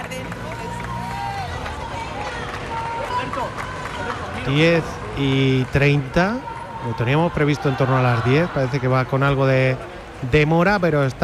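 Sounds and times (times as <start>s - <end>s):
outdoor crowd murmur at a parliament entrance: 0.0s - 11.2s
people shouting: 0.6s - 9.4s
speech: 4.4s - 11.2s.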